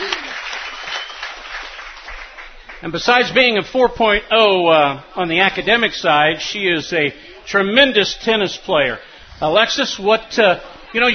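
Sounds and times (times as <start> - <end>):
audience clapping: 0.0 - 3.5
speech: 2.8 - 11.1.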